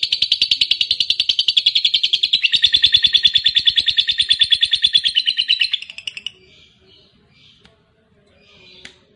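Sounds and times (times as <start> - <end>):
fighter-type lovebird giving harsh shrill chirps and buzzy chatter: 0.0 - 6.4.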